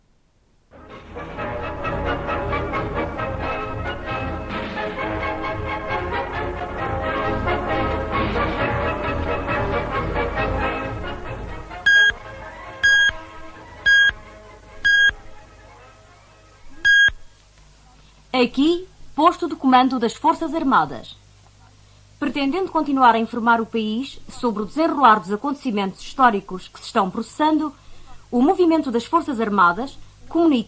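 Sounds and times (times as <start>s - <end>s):
radio music: 0.8s - 17.3s
short bright electronic beeps: 11.9s - 12.2s, 12.8s - 13.2s, 13.8s - 14.2s, 14.8s - 15.2s, 16.8s - 17.3s
speech: 18.4s - 21.2s, 22.2s - 30.6s.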